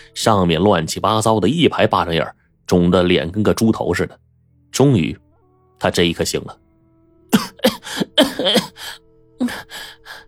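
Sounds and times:
speech: 0.0 - 5.2, 5.8 - 6.6, 7.3 - 10.2
voice imitating harsh violent coughing: 7.3 - 9.7.

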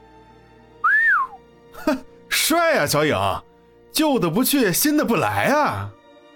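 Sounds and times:
teasing whistle: 0.8 - 1.4
speech: 1.9 - 6.0.

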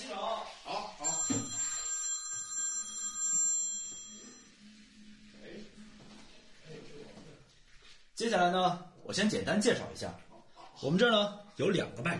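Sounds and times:
telephone ringing with a high-pitched electronic ringtone: 1.0 - 4.5
speech: 8.2 - 10.2, 10.8 - 12.1.

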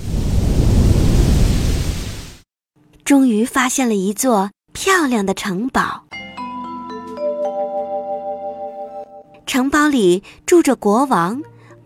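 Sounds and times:
thunder rumbling: 0.0 - 2.4
speech: 3.1 - 6.2, 9.5 - 11.8.

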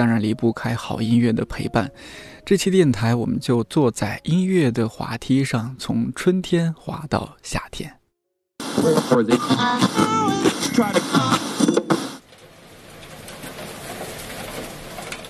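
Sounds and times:
speech: 0.0 - 8.0, 8.8 - 11.4
rain falling in Beijing: 12.2 - 15.2.

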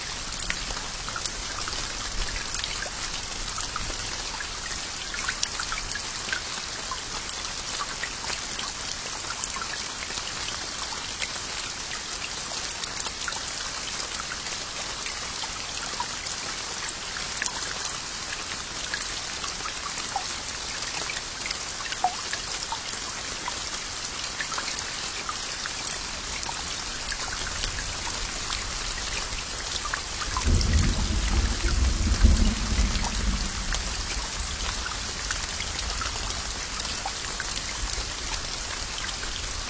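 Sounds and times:
steady dense rain in a thunderstorm: 0.0 - 39.6
low roll of thunder: 30.4 - 35.3.

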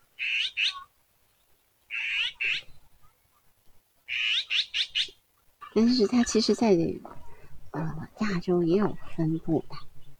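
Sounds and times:
forest wagtail calling: 0.2 - 0.9, 1.9 - 2.8, 4.1 - 6.4
speech: 5.8 - 7.2, 7.8 - 9.8.

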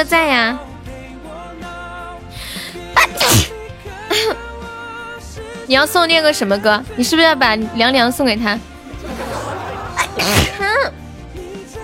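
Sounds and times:
speech: 0.0 - 0.7, 5.7 - 8.7, 10.2 - 10.5
person sneezing: 3.0 - 4.4, 10.0 - 10.7
laughter: 8.9 - 10.6.

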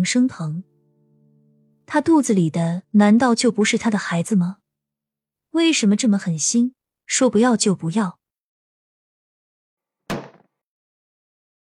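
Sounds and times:
speech: 0.0 - 0.7, 1.9 - 4.6, 5.5 - 8.2
door slamming shut loudly: 10.1 - 10.5.

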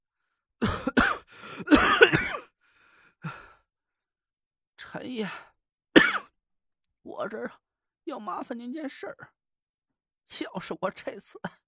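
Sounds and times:
coughing: 0.6 - 2.6, 6.0 - 6.3
speech: 5.1 - 5.5, 7.2 - 9.4, 10.3 - 11.6.

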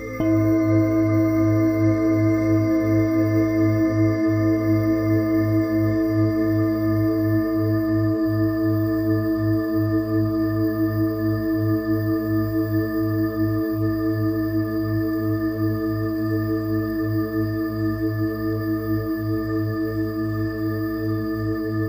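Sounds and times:
singing bowl humming: 0.1 - 21.7.

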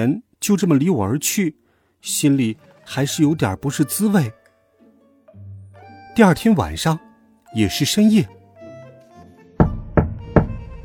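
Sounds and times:
speech: 0.0 - 4.4, 6.2 - 8.4
knocking on a door: 9.6 - 10.8.

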